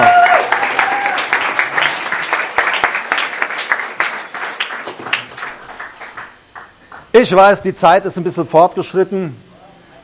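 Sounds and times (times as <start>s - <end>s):
audience applause after a church service performance: 0.0s - 7.1s
speech: 7.2s - 9.4s.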